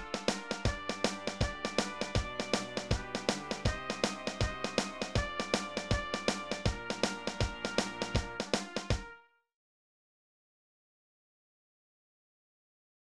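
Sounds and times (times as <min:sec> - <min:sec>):
percussion: 0:00.0 - 0:09.1.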